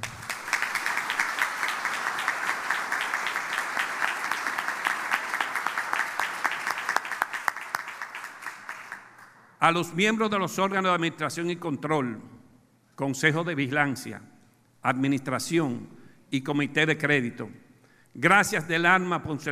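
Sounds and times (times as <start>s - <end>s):
audience applause: 0.0s - 9.4s
speech: 9.6s - 12.3s, 13.0s - 19.5s.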